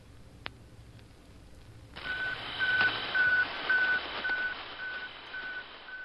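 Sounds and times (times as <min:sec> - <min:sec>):
Sputnik satellite radio beeps: 0:02.0 - 0:06.0.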